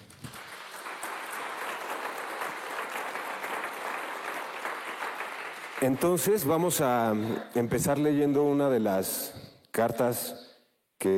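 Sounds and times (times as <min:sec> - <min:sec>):
audience applauding: 0:00.0 - 0:06.9
speech: 0:05.8 - 0:10.4.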